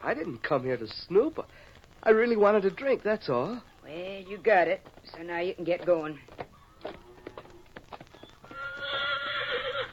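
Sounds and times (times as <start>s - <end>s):
hooves clip-clopping: 0.1s - 9.9s
speech: 0.2s - 7.0s
horse whinnying: 8.4s - 9.9s.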